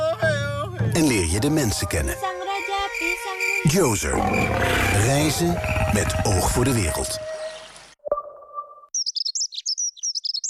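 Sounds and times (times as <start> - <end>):
dunnock song: 0.0 - 8.0
speech: 1.0 - 2.4, 3.6 - 7.3.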